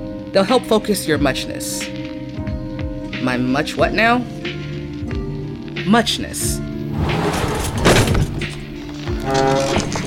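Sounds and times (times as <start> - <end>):
speech: 0.3 - 2.1, 3.2 - 4.7, 5.9 - 7.2
drawer slamming: 6.9 - 10.0.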